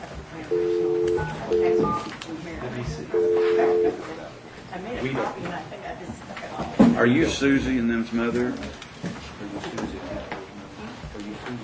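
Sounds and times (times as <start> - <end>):
touch-tone keypad beeps dialing a counselor's phone number: 0.5 - 2.1
speech: 1.5 - 3.3, 4.7 - 8.8.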